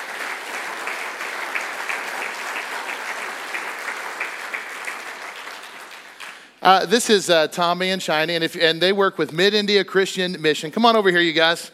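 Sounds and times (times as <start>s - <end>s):
audience applause at a church gathering: 0.0s - 6.6s
speech: 6.6s - 11.7s.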